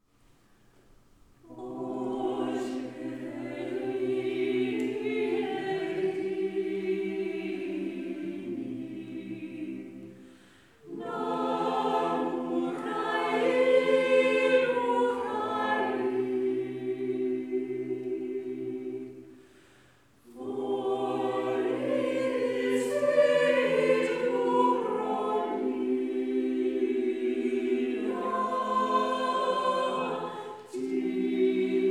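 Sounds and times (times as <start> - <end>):
choir singing a prayer: 1.4 - 31.8.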